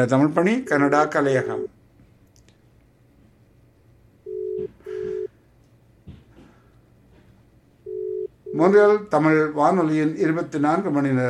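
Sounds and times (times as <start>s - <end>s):
speech: 0.0s - 1.8s, 8.6s - 11.2s
telephone busy tone on a call failing to connect: 4.3s - 5.3s, 7.9s - 8.6s.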